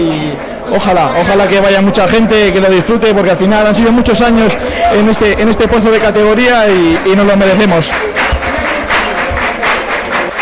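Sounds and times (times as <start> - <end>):
speech: 0.0 - 8.1
low thumps: 3.6 - 10.1
crowd applauding and cheering football players celebrating a promotion: 4.0 - 10.4.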